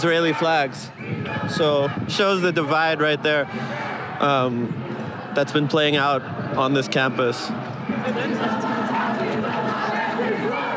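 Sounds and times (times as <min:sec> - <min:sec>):
speech: 0:00.0 - 0:08.9
protest crowd on campus: 0:00.0 - 0:10.7.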